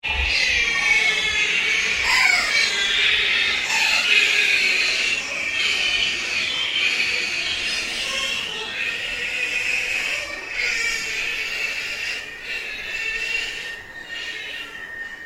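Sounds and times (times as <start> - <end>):
ambient drone: 0.0 - 15.2
ghost chatter: 0.0 - 15.2.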